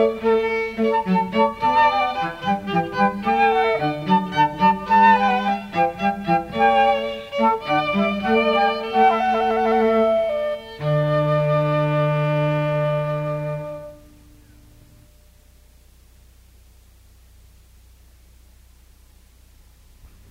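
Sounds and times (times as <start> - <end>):
chamber music hornpipe: 0.0 - 15.1.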